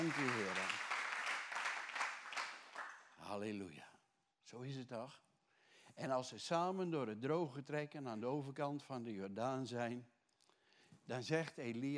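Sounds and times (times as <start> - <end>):
speech: 0.0 - 0.8, 3.3 - 5.3, 5.9 - 10.1, 11.0 - 11.9
applause from audience: 0.0 - 3.0.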